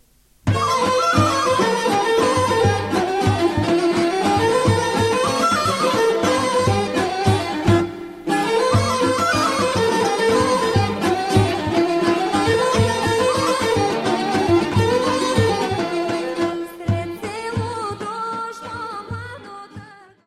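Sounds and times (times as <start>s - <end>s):
Bulgarian racenica folk dance music: 0.4s - 20.0s.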